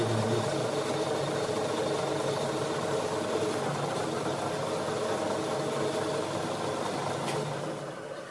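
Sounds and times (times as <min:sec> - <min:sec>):
workshop machines, drills and grinders droning: 0:00.0 - 0:08.2.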